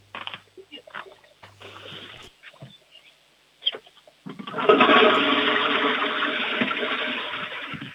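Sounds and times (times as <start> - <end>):
toilet flush: 4.4 - 7.9.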